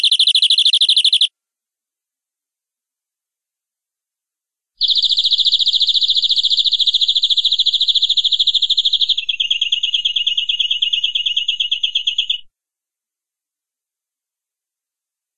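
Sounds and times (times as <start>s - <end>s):
canary trilling: 0.0s - 1.3s, 4.8s - 11.7s.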